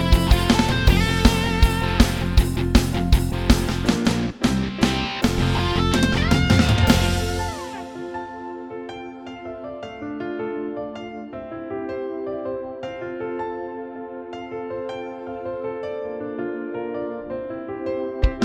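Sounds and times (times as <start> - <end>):
guitars on a Korg: 0.0 - 8.1, 18.2 - 18.4.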